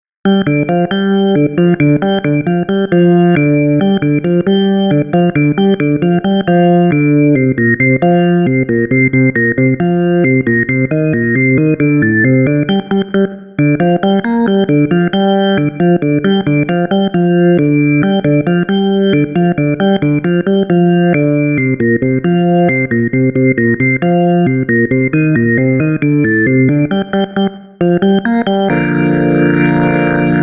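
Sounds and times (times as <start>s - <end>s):
organ: 0.3s - 30.4s.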